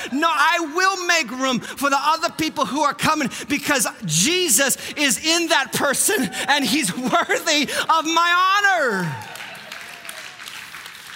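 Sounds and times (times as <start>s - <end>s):
speech: 0.1s - 9.3s
scattered audience clapping: 9.0s - 11.1s.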